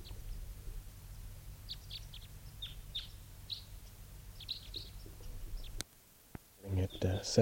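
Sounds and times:
two birds calling: 0:00.0 - 0:05.9.

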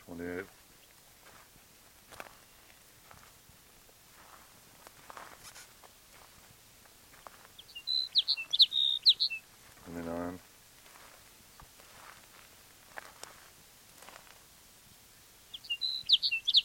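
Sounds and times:
faint scuffling noises: 0:04.1 - 0:07.6, 0:09.6 - 0:14.4
bird chirping: 0:07.5 - 0:10.0, 0:15.1 - 0:16.6.

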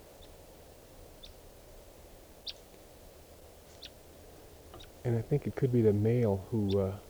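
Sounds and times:
wild bird calling: 0:00.0 - 0:07.0
speech: 0:05.0 - 0:07.0.

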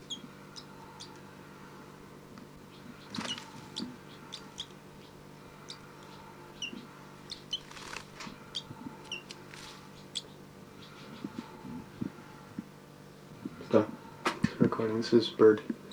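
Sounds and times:
baby bird begging calls: 0:00.0 - 0:01.4, 0:02.7 - 0:12.2
speech: 0:14.8 - 0:15.8.

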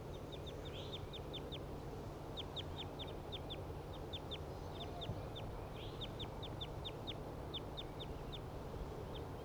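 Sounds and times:
wild bird calling above the cages: 0:00.1 - 0:09.3.

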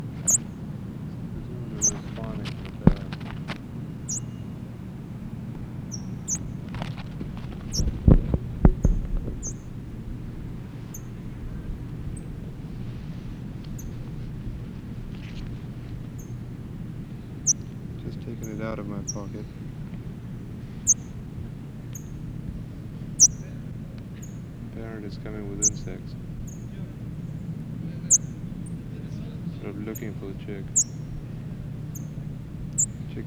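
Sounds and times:
parrot chick chirping: 0:00.0 - 0:09.9, 0:10.8 - 0:11.4, 0:17.3 - 0:22.4, 0:23.0 - 0:23.5, 0:25.3 - 0:26.7, 0:27.3 - 0:28.6, 0:29.8 - 0:31.2, 0:31.9 - 0:33.2
low hum: 0:00.0 - 0:33.2.

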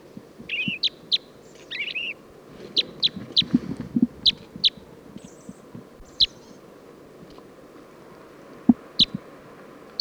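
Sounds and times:
purple finch song: 0:00.0 - 0:06.7, 0:08.7 - 0:09.3.

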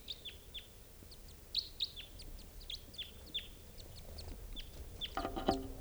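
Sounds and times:
crossbills chittering: 0:00.2 - 0:05.7.

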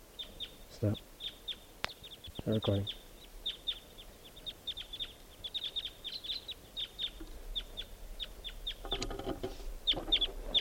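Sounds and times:
crossbill calls: 0:00.0 - 0:10.5
speech: 0:00.8 - 0:01.1, 0:02.4 - 0:03.0.

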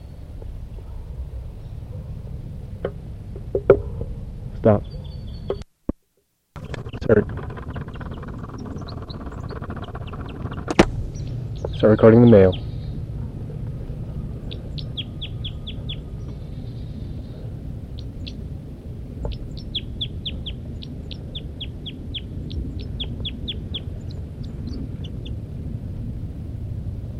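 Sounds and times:
low hum: 0:00.0 - 0:27.1
speech: 0:04.6 - 0:04.9, 0:11.8 - 0:12.6
female bird giving flight calls from her nest: 0:04.6 - 0:05.7, 0:06.6 - 0:13.3, 0:14.2 - 0:25.4.

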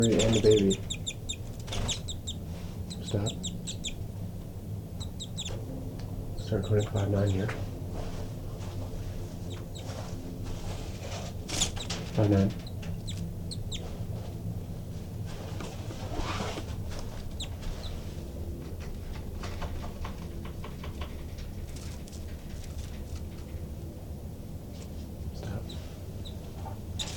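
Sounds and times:
speech: 0:00.0 - 0:01.0, 0:03.1 - 0:03.5, 0:06.5 - 0:07.7, 0:12.2 - 0:12.6
agitated birds calling near nest: 0:00.0 - 0:15.3, 0:16.2 - 0:20.6, 0:25.0 - 0:27.1
constant low rumble: 0:00.0 - 0:27.0.

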